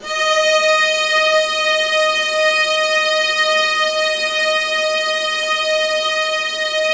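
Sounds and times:
D#3 viola expressive note: 0.0 - 6.9.

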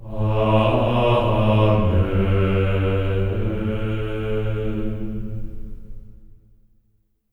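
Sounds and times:
choir voices in A3: 0.0 - 5.7.

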